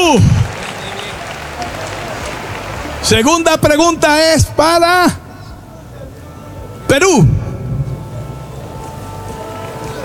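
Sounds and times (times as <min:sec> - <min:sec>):
loud crowd applause: 0:00.0 - 0:03.8
speech: 0:03.1 - 0:05.2, 0:06.9 - 0:07.4.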